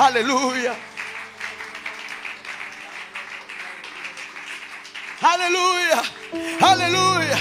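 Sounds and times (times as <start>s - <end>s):
speech: 0.0s - 0.9s, 5.2s - 7.3s
audience applause: 0.0s - 7.3s
low sustained musical drone: 6.2s - 7.3s.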